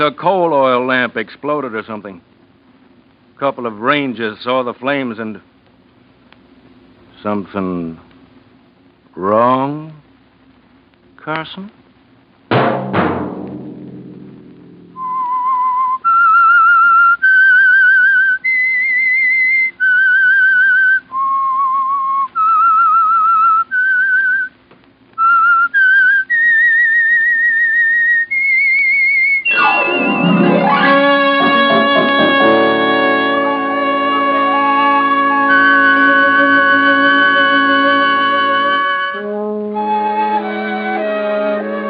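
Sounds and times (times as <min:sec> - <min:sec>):
speech: 0:00.0 - 0:02.3, 0:03.4 - 0:05.5, 0:07.2 - 0:08.1, 0:09.2 - 0:10.0, 0:11.2 - 0:11.8
sharp musical hit: 0:12.6 - 0:15.2, 0:29.5 - 0:38.9
whistled radio theme melody: 0:15.0 - 0:24.4, 0:25.2 - 0:41.8
loud orchestral chord: 0:29.5 - 0:41.8.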